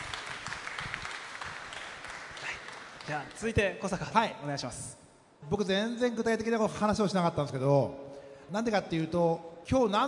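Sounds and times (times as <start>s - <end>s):
audience applauding: 0.0s - 3.6s
speech: 3.1s - 10.0s.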